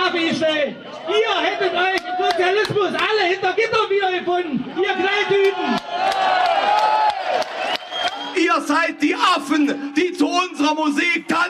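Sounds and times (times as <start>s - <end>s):
crowd shouting: 0.0s - 3.0s, 4.4s - 11.4s
speech: 0.2s - 5.7s
claps or whoops: 1.9s - 2.8s, 5.4s - 8.4s.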